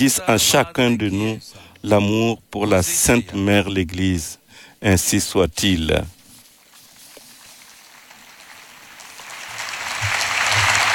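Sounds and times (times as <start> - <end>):
speech: 0.0 - 6.2
audience applause: 8.0 - 10.9.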